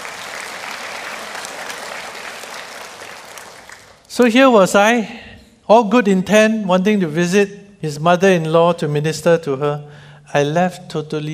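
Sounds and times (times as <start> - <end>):
audience applause: 0.0 - 4.1
speech: 4.1 - 11.3.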